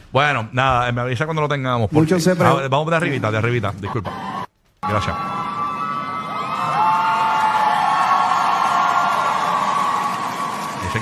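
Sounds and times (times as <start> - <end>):
speech: 0.1 - 5.4
audience applauding: 4.8 - 11.0.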